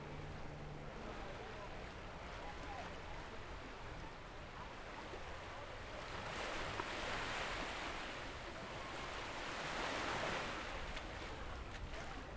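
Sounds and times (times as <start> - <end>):
sea on a beach in Jalisco: 0.0 - 12.2.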